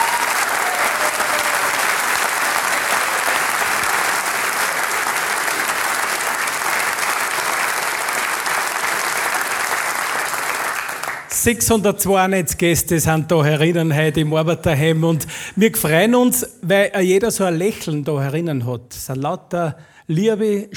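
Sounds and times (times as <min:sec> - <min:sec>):
hall audience applauding: 0:00.0 - 0:11.3
speech: 0:11.4 - 0:20.7.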